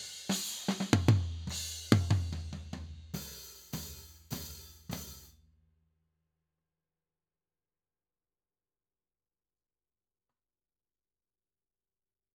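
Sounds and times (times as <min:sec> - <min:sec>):
tom drum: 0:00.0 - 0:05.3.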